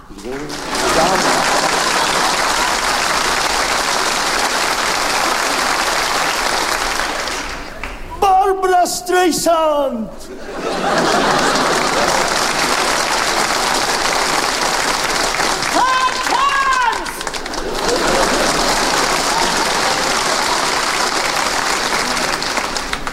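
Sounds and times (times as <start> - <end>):
audience applause: 0.0 - 8.0, 10.5 - 23.1
speech: 0.1 - 1.7, 8.8 - 11.5
laughter: 0.5 - 3.6, 10.2 - 14.4, 17.2 - 22.9
person whooping: 1.7 - 3.1, 15.7 - 17.2, 19.1 - 20.8.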